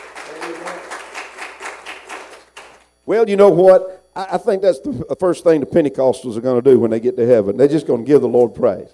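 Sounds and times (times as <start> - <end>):
congregation at a Pentecostal church service clapping in praise: 0.0 - 2.9
speech: 3.1 - 8.9.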